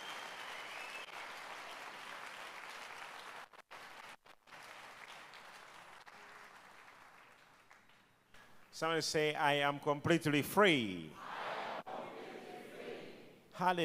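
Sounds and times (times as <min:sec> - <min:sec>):
audience clapping hands: 0:00.0 - 0:09.0
speech: 0:08.8 - 0:11.2, 0:13.6 - 0:13.8.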